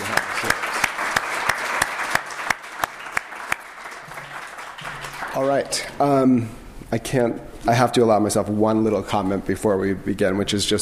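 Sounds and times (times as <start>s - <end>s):
audience round of applause: 0.0s - 5.9s
speech: 5.4s - 10.8s.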